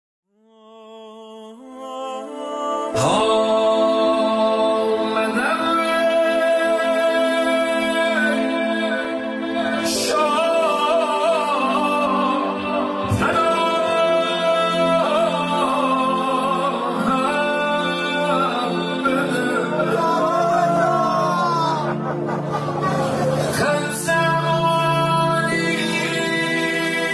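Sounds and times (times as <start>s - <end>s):
Mowludi devotional singing: 0.5s - 27.1s
laughter: 19.2s - 24.8s.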